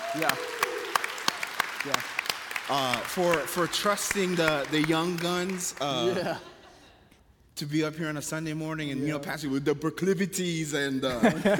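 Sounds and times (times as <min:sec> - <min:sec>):
audience clapping: 0:00.0 - 0:06.4
speech: 0:00.2 - 0:00.5, 0:01.8 - 0:06.5, 0:07.6 - 0:11.5
laughter: 0:05.8 - 0:07.0, 0:11.0 - 0:11.5.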